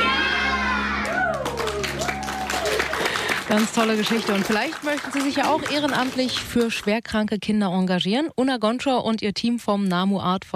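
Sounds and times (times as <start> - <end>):
children cheering and shouting in a Berlin children's hospital ward during a clown visit: 0.0 - 3.0
speech: 3.5 - 10.5.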